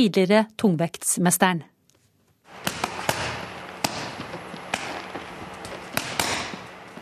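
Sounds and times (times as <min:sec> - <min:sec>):
speech: 0:00.0 - 0:01.7
boxing training punches on pads or a bag at a boxing club: 0:02.5 - 0:07.0.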